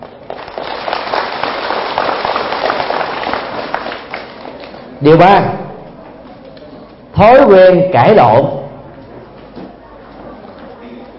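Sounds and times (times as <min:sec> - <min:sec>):
loud applause: 0:00.0 - 0:04.9
speech: 0:05.0 - 0:05.6, 0:07.2 - 0:08.6.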